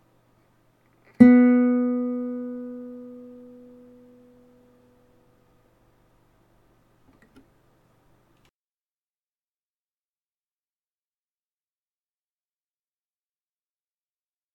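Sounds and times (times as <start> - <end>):
Spanish guitar second string B plucked while tuning: 1.1 - 5.1.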